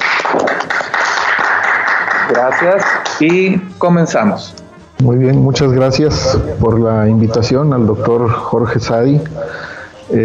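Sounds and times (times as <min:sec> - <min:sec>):
audience applause: 0:00.0 - 0:03.5
speech: 0:02.3 - 0:10.2.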